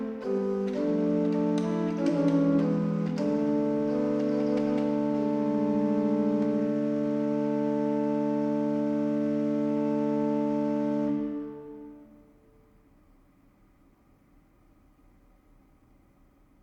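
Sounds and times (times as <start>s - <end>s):
instrumental music: 0.0s - 12.6s.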